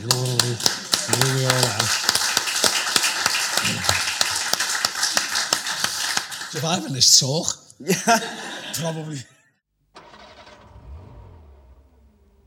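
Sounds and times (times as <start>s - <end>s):
speech: 0.0s - 2.0s, 6.5s - 9.4s
audience applause: 0.0s - 7.2s
laughter: 7.8s - 9.3s.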